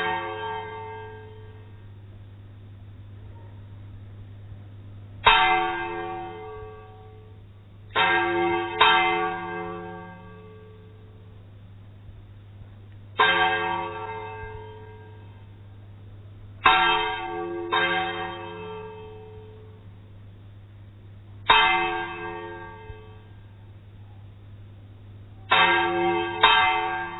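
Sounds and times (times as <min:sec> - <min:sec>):
bell: 0:05.2 - 0:11.2, 0:13.2 - 0:15.6, 0:16.6 - 0:19.9, 0:21.5 - 0:23.5, 0:25.5 - 0:27.1.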